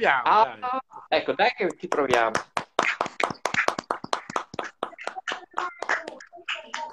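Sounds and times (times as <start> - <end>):
speech: 0.0 - 2.5
hand clapping applause: 1.7 - 6.9.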